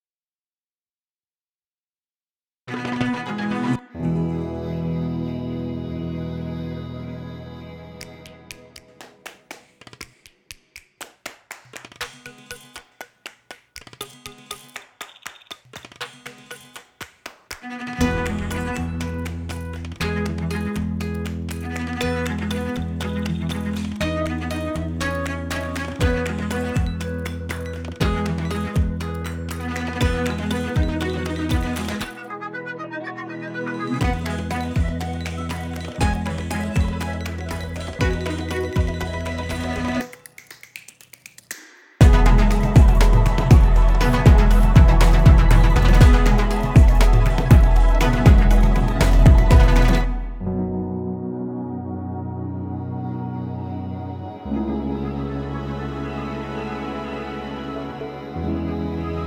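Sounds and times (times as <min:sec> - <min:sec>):
instrumental theme music: 0:02.7 - 0:09.6, 0:17.8 - 0:40.2, 0:42.0 - 0:59.2.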